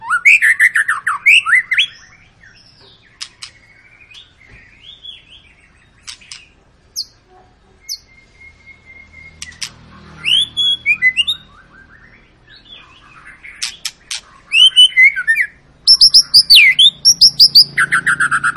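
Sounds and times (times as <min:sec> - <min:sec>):
White-rumped shama singing: 0:00.0 - 0:05.4, 0:06.0 - 0:07.2, 0:07.8 - 0:18.5
sharp clicks: 0:06.0 - 0:06.5, 0:09.4 - 0:09.8, 0:13.6 - 0:14.3.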